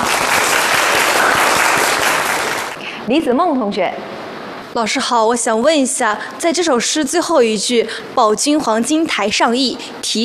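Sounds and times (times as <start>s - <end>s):
class applauding: 0.0s - 2.8s
speech: 3.1s - 4.1s, 4.7s - 10.2s.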